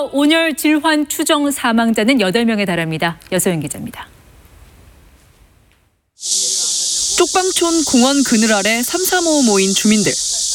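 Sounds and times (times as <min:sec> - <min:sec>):
speech: 0:00.0 - 0:04.1, 0:06.2 - 0:06.6, 0:07.2 - 0:10.2
water spraying in a hissing rush: 0:06.2 - 0:10.5.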